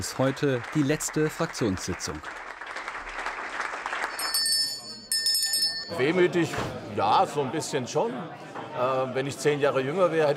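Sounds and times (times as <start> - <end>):
speech: 0.0 - 2.5, 5.9 - 10.3
applause: 0.0 - 5.1.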